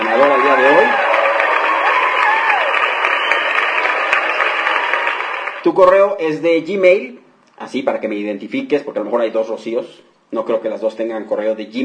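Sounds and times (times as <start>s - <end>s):
canned applause sound effect on a radio call-in show: 0.0s - 5.7s
speech: 5.6s - 11.8s.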